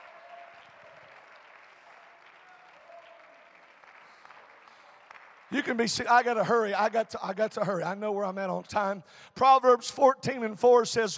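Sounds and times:
audience clapping: 0.0 - 7.6
speech: 5.5 - 11.1.

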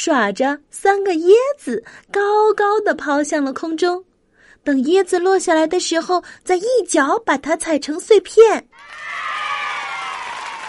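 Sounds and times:
speech: 0.0 - 9.3
crowd cheering and clapping: 8.8 - 10.6.

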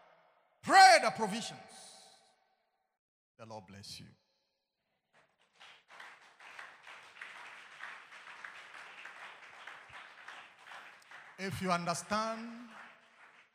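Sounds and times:
speech: 0.6 - 1.9, 3.4 - 4.2, 11.4 - 12.8
audience clapping hands: 5.1 - 13.5.

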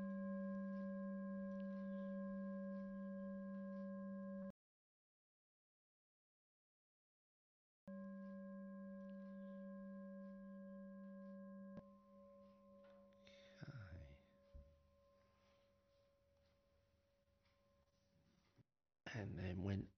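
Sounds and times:
meditation bell ringing: 0.0 - 4.5, 7.9 - 16.6
speech: 19.2 - 19.9.

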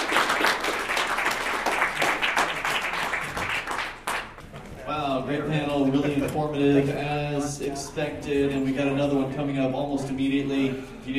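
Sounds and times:
audience applause: 0.0 - 4.4
speech: 5.3 - 11.1.

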